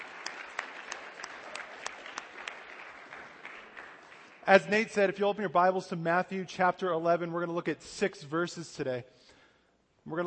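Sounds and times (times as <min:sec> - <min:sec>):
audience applause: 0:00.0 - 0:04.7
speech: 0:04.5 - 0:09.3, 0:10.0 - 0:10.2.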